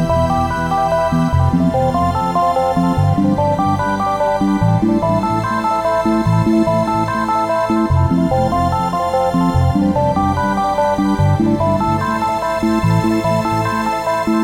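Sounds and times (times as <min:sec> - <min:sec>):
looping fantasy game background music: 0:00.0 - 0:14.4.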